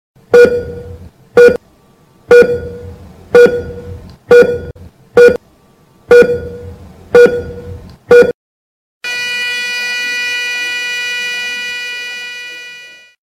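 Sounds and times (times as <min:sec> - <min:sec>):
EKG heart monitor beeping: 0:00.3 - 0:01.6, 0:02.3 - 0:05.4, 0:06.1 - 0:08.4.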